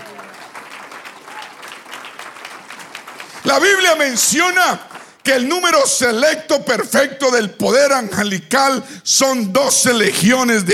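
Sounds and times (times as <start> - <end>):
audience applause: 0.0 - 5.7
speech: 3.5 - 10.7.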